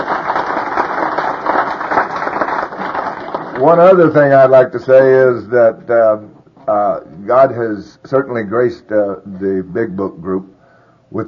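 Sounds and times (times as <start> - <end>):
crowd applause: 0.0 - 4.1
speech: 3.6 - 10.5.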